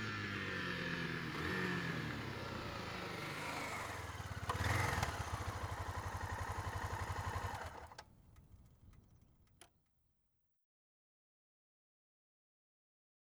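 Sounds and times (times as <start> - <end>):
Suzuki XF 650 Freewind motorcycle engine: 0.0 - 9.6.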